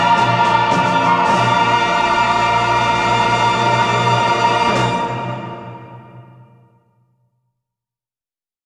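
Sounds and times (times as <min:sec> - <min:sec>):
string orchestra: 0:00.0 - 0:06.6
choir singing: 0:00.0 - 0:06.7.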